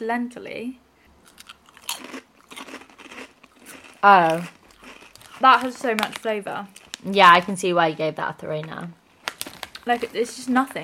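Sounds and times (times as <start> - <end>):
speech: 0.0 - 1.4, 4.0 - 4.6, 5.4 - 9.0, 9.8 - 10.8
crunching and chewing plain lentil crisps: 1.2 - 7.5, 9.0 - 10.8.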